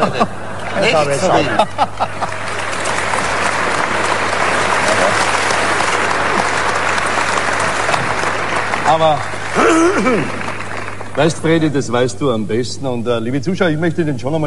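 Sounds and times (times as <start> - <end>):
speech: 0.0 - 2.3, 8.9 - 10.4, 11.2 - 14.4
voices and laughter: 0.0 - 2.5
large audience applause: 1.8 - 12.0.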